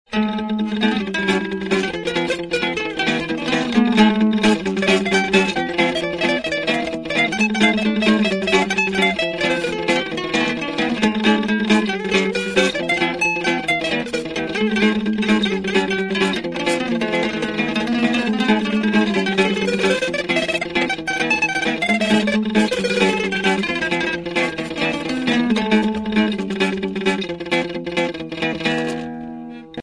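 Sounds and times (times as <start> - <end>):
improvised music: 0.1 - 29.8.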